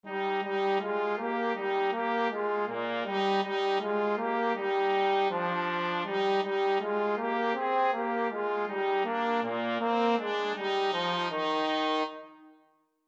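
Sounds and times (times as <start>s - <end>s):
trumpet and trombone duet: 0.1s - 12.4s.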